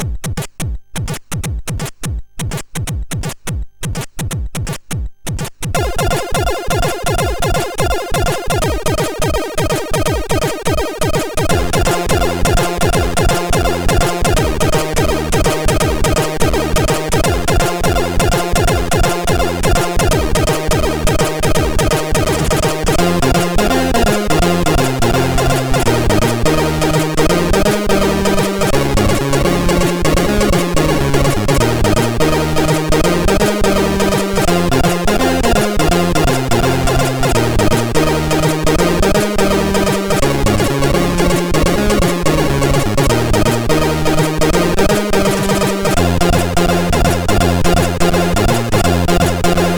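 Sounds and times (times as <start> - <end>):
chiptune jig on a MOS6581R4 SID chip: 1.0 - 49.7.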